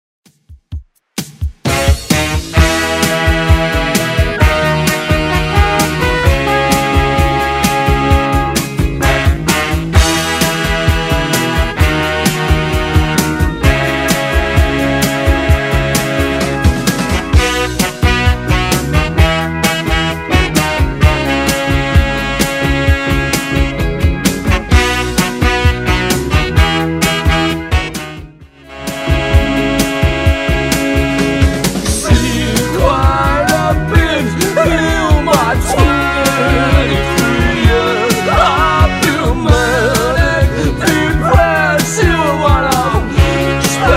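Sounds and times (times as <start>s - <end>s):
1970s-style music at 130 bpm: 1.2s - 43.9s
laughter: 32.0s - 43.0s.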